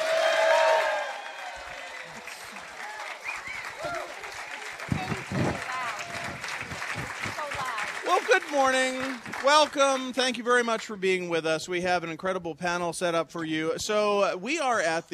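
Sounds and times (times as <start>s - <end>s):
live audience applauding loudly: 0.0s - 10.6s
speech: 8.4s - 15.1s.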